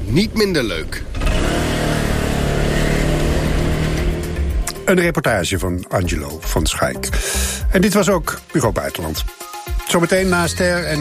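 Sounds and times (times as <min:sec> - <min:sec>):
speech: 0:00.1 - 0:01.7, 0:04.9 - 0:10.9
125cc scooter engine revving: 0:01.1 - 0:04.7.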